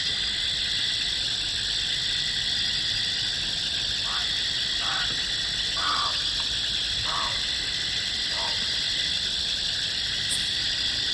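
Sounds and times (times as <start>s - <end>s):
insect chorus at night by the Yacuma River: 0.0s - 11.1s
short frog calls at night by the Yacuma River: 3.8s - 11.1s.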